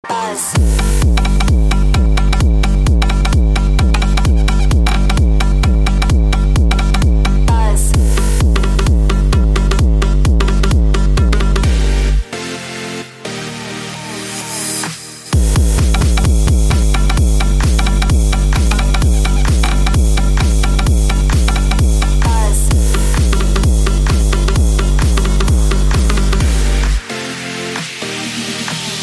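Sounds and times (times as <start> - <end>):
techno music: 0.0 - 29.0.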